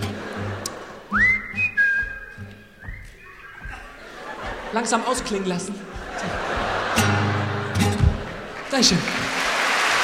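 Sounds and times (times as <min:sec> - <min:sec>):
laughter: 0:00.0 - 0:01.4, 0:03.1 - 0:08.7
audience whistling a melody along at a live concert: 0:01.1 - 0:04.4
speech: 0:04.8 - 0:06.0, 0:08.8 - 0:09.2.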